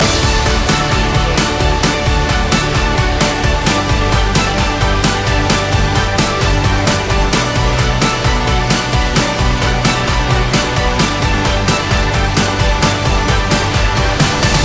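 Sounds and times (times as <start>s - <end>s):
sports hero music loop: 0.0s - 14.6s.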